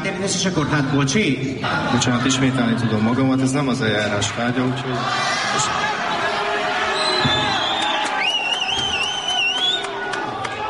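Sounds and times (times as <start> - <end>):
speech: 0.2 - 5.8
thin high whistle-like tones sliding upward: 6.9 - 9.9
audience applause: 6.9 - 10.6.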